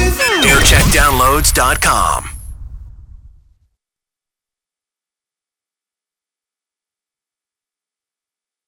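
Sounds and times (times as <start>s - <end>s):
jingle montage: 0.2s - 2.4s.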